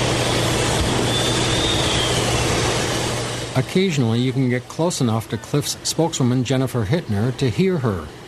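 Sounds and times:
ore processing machines whistling: 0.1 - 3.3
speech: 3.6 - 8.2.

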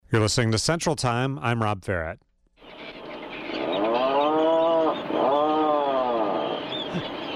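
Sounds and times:
speech: 0.1 - 2.3
Atlantic puffin call: 2.7 - 7.3.

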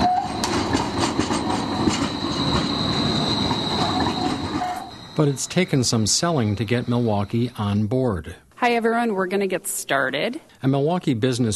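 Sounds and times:
electric streetcar gliding on street rails: 0.0 - 7.6
speech: 5.2 - 11.5.

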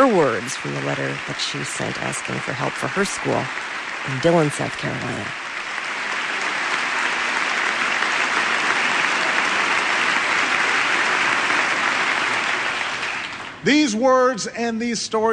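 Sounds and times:
speech: 0.0 - 5.4, 13.6 - 15.3
applause in the congressional chamber during a presidential address: 0.0 - 13.6.

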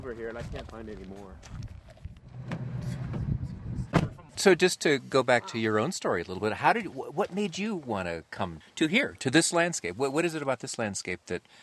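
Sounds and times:
speech: 0.0 - 1.8, 4.4 - 11.6
car driving down a road: 1.9 - 3.9.

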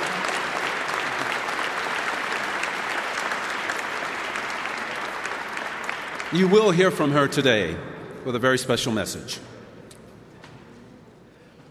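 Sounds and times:
audience applauding a professor: 0.0 - 7.1
speech: 6.3 - 9.5.

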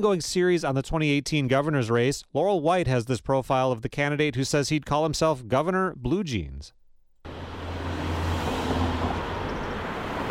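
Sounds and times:
speech: 0.0 - 6.8
cars speeding by on a busy street in Madison: 7.3 - 10.2.

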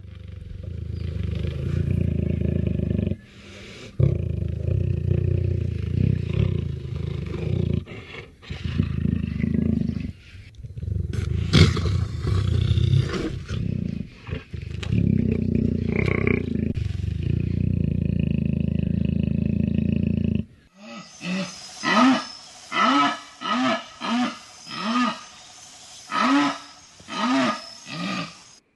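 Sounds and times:
jaguar purring in the wild: 0.0 - 25.4
jaguar calls in the wild: 20.8 - 28.6.

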